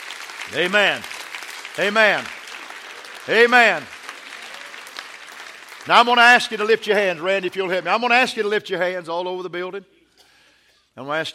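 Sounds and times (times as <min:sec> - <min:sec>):
audience clapping: 0:00.0 - 0:08.5
speech: 0:00.5 - 0:01.1, 0:01.8 - 0:02.4, 0:03.2 - 0:04.0, 0:05.8 - 0:10.0, 0:11.0 - 0:11.3.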